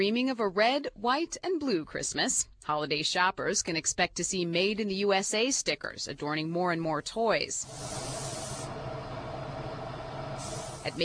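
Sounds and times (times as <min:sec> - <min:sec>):
speech: 0:00.0 - 0:08.4, 0:10.8 - 0:11.0
spray gun spraying finish onto wooden toy fire trucks: 0:07.6 - 0:09.2, 0:10.2 - 0:11.0.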